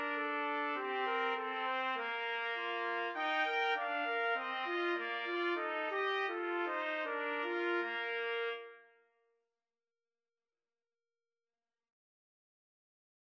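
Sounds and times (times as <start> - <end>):
trumpet trio karaoke melody: 0.0 - 9.0.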